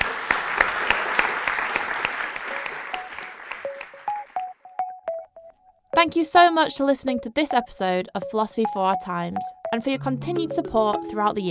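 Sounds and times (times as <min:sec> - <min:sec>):
audience applause: 0:00.0 - 0:04.6
sharp pitched ringing tones: 0:02.9 - 0:06.2, 0:08.6 - 0:11.2
speech: 0:06.1 - 0:11.4.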